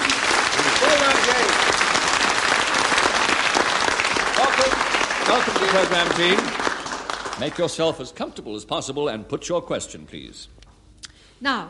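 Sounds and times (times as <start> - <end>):
studio audience applause: 0.0 - 8.2
speech: 5.3 - 6.6, 7.4 - 10.6, 11.4 - 11.6.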